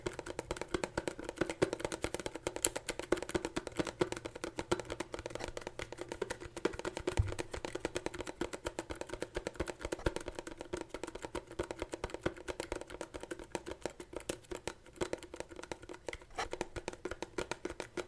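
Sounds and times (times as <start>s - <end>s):
quick dense taps and clicks: 0.0s - 18.0s.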